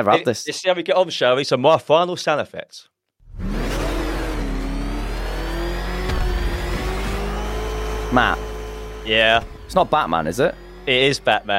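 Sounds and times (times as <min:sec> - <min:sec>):
speech: 0:00.0 - 0:03.5, 0:08.1 - 0:11.5
car engine revving: 0:03.2 - 0:11.5.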